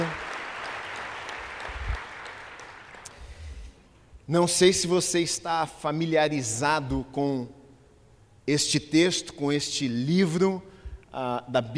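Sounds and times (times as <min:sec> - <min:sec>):
audience applause: 0:00.0 - 0:03.2
speech: 0:04.3 - 0:07.6, 0:08.5 - 0:11.7.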